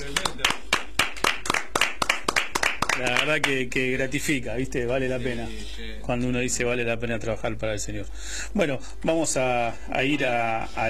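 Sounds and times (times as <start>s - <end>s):
rhythmic clapping from a church congregation: 0.0s - 3.7s
speech: 3.0s - 10.8s.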